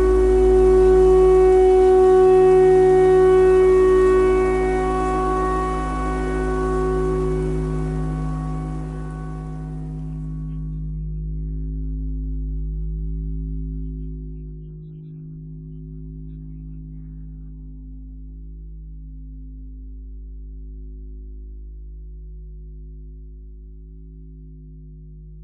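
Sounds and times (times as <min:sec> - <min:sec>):
clarinet imitating a tornado siren: 0:00.0 - 0:10.5.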